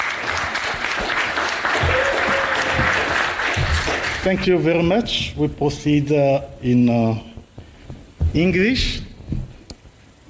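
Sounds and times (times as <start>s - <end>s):
audience applause: 0.0s - 4.6s
speech: 4.2s - 7.3s, 8.4s - 9.0s.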